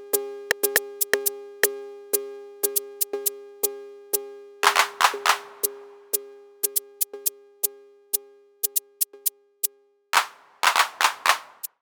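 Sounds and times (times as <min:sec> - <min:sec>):
Roland TR 08 drum machine percussion: 0:00.5 - 0:01.3, 0:04.6 - 0:07.3, 0:08.6 - 0:08.8, 0:10.2 - 0:11.8.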